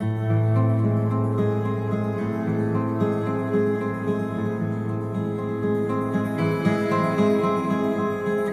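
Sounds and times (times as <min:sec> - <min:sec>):
sad guitar music: 0:00.0 - 0:08.5.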